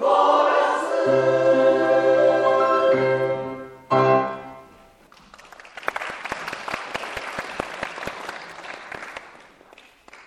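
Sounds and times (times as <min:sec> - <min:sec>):
chorus singing: 0:00.0 - 0:03.7.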